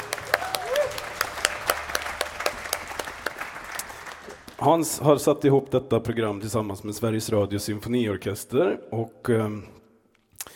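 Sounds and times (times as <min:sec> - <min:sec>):
audience applause: 0:00.0 - 0:04.8
speech: 0:04.6 - 0:09.8.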